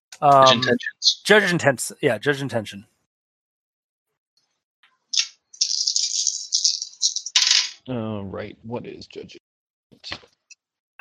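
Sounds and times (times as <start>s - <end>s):
speech: 0.2s - 2.9s, 7.9s - 9.4s, 10.0s - 10.4s
eight dice shaken and rolled during a Shadowrun tabletop role-playing game: 5.2s - 7.8s.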